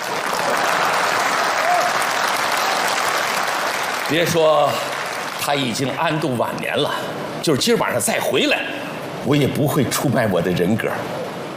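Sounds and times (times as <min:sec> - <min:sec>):
audience applause: 0:00.0 - 0:06.0
speech: 0:04.1 - 0:11.2.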